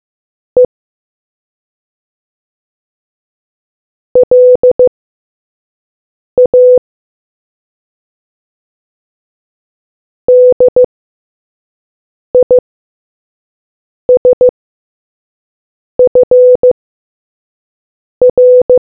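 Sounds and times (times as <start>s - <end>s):
morse code beeps: 4.2s - 4.9s, 6.4s - 6.8s, 10.3s - 10.9s, 12.4s - 12.6s, 14.2s - 14.5s, 16.0s - 16.8s, 18.2s - 18.8s.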